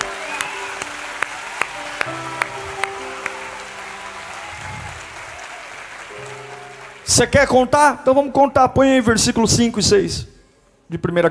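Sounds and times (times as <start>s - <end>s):
sharper rhythmic claps: 0.0s - 7.4s
audience applause: 0.0s - 7.7s
sustained keyboard chords: 0.0s - 9.1s
speech: 7.2s - 11.2s.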